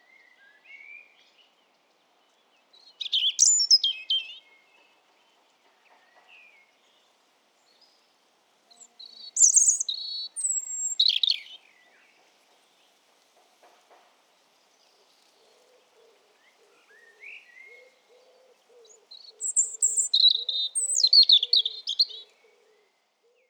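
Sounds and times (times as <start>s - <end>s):
European robin singing: 2.8s - 4.5s, 8.7s - 11.7s, 18.8s - 22.4s.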